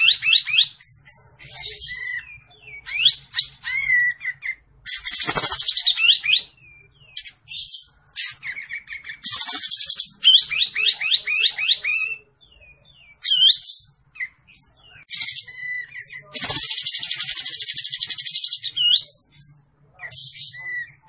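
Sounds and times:
olive-winged bulbul singing: 0:00.0 - 0:21.0.

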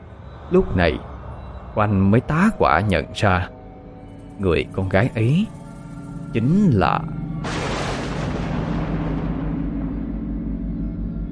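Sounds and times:
speech: 0:00.5 - 0:01.1, 0:01.8 - 0:03.6, 0:04.4 - 0:05.6, 0:06.3 - 0:07.2
deafening thunderclap: 0:07.4 - 0:11.2.

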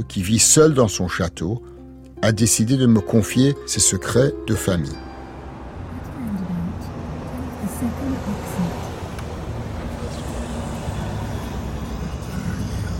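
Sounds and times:
speech: 0:00.0 - 0:05.1
car driving on a road: 0:04.4 - 0:12.9.

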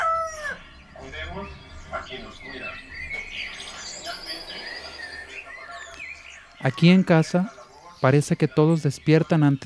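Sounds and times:
roosters crowing at home: 0:00.0 - 0:00.7
birds chirping and clucking: 0:00.0 - 0:09.6
television playing far off: 0:00.0 - 0:09.6
speech: 0:06.6 - 0:09.6.

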